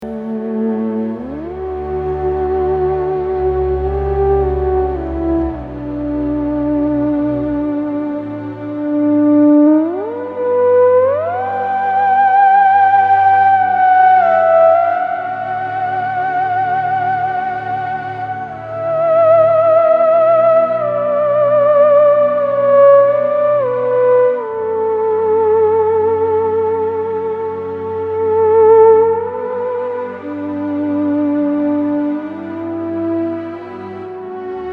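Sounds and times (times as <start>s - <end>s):
theremin: 0.0s - 34.7s.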